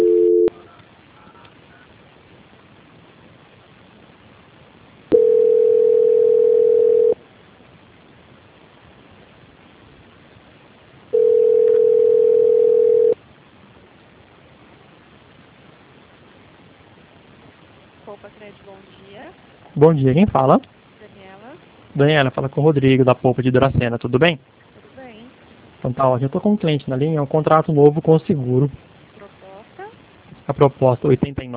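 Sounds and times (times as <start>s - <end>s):
telephone ringback tones while a call is transferred: 0.0s - 0.6s, 5.1s - 7.2s, 11.2s - 13.2s
faint telephone line hiss: 0.0s - 31.5s
speech: 19.8s - 20.7s, 22.0s - 24.7s, 25.8s - 28.9s, 30.5s - 31.5s.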